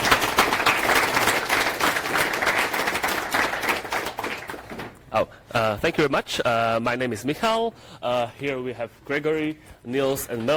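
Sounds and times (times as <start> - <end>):
conference audience applause: 0.0 - 4.9
speech: 5.2 - 10.5.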